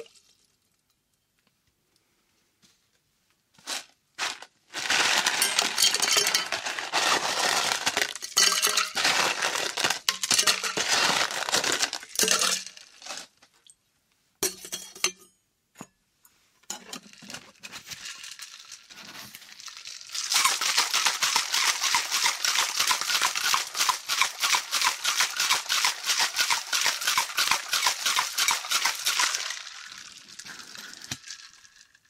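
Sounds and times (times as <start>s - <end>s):
shaker: 3.6s - 13.3s, 17.6s - 31.6s.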